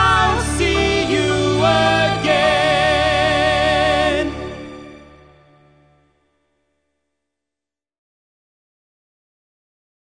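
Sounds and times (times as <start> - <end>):
musical theater duet singing in English: 0.0 - 4.6.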